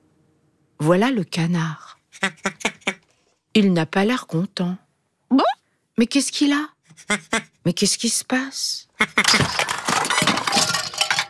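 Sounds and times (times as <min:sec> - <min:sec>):
speech: 0:00.8 - 0:02.4, 0:03.6 - 0:09.8
toys and books tumbling and crashing down: 0:09.2 - 0:11.2.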